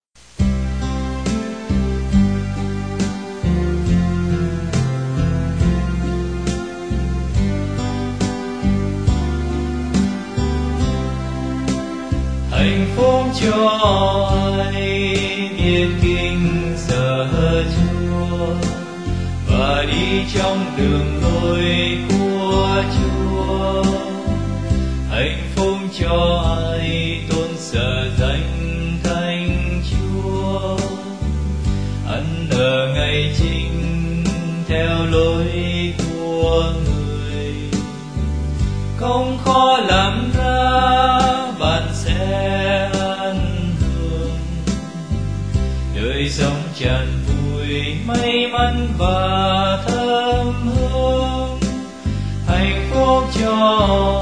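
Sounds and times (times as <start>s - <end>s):
bass: 0.0s - 54.2s.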